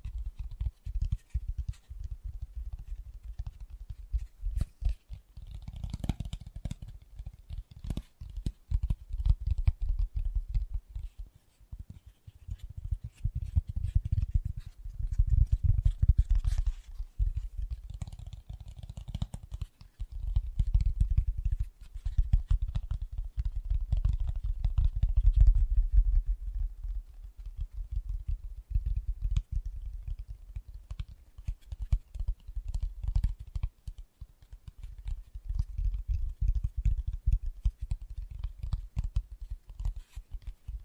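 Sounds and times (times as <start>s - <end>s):
fast gentle tapping: 0.0s - 40.8s.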